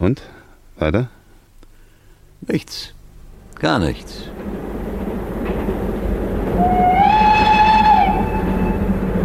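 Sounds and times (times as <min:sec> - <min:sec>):
speech: 0:00.0 - 0:01.2, 0:02.4 - 0:03.0, 0:03.6 - 0:04.5
train running on rails: 0:03.3 - 0:09.2.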